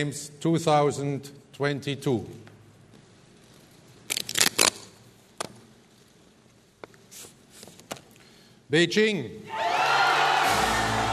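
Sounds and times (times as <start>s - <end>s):
speech: 0.0s - 2.5s, 8.7s - 9.6s
crowd cheering and roaring: 9.5s - 11.1s.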